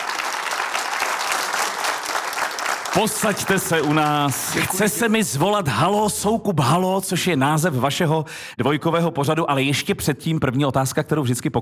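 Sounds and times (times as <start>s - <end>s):
audience applause: 0.0s - 5.1s
speech: 3.0s - 11.6s.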